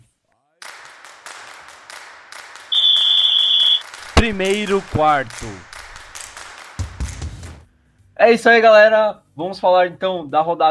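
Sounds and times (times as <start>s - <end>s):
rhythmic percussive bursts of a podcast segment jingle: 0.6s - 3.1s, 3.8s - 7.6s
high-pitched whistle-like tone: 2.7s - 3.8s
speech: 4.2s - 5.7s, 8.2s - 10.6s.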